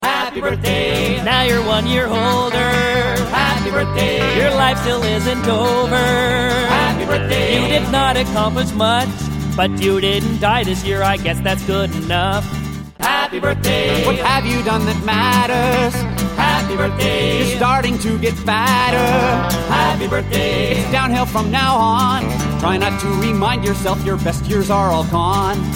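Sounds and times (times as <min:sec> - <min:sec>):
funny birthday song: 0:00.0 - 0:25.6.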